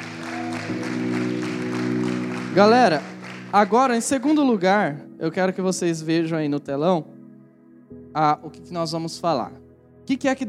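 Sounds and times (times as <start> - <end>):
audience applause: 0.0 - 3.8
speech: 2.6 - 7.1, 8.2 - 10.4.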